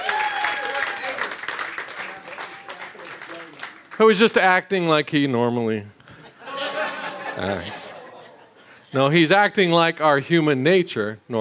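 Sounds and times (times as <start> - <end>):
whistles and cheers: 0.0 - 2.9
audience applause: 0.0 - 4.2
speech: 4.0 - 6.0, 7.4 - 7.8, 8.9 - 11.3
laughter: 6.1 - 8.8.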